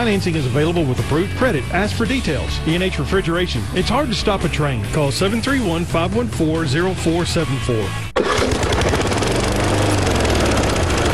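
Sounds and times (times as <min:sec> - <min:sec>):
speech: 0:00.0 - 0:08.6
old lawn mower engine running: 0:08.2 - 0:11.1.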